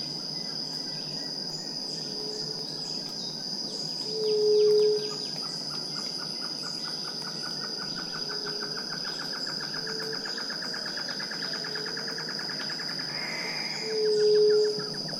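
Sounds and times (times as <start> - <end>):
White-tipped dove hooting call: 4.1 - 5.2, 13.1 - 15.1.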